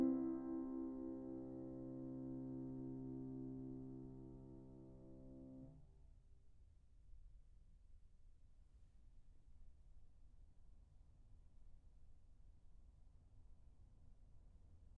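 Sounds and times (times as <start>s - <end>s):
fugue in C minor: 0.0s - 5.7s.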